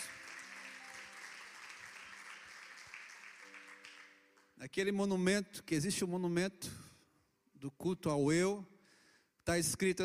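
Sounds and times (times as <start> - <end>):
audience applauding: 0.0 - 4.5
speech: 4.6 - 6.8, 7.6 - 8.7, 9.5 - 10.0.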